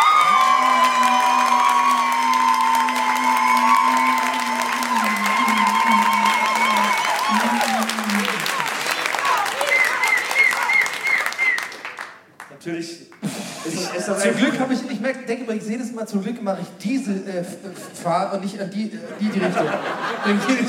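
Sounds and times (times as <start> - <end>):
audience applause: 0.0 - 12.6
laughter: 2.6 - 11.1, 13.2 - 14.8, 17.4 - 20.6
speech: 15.5 - 20.6.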